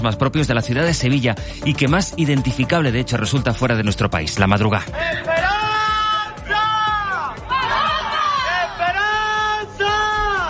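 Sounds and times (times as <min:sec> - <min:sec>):
speech: 0:00.0 - 0:05.6
crowd shouting outside church doors: 0:05.0 - 0:10.4.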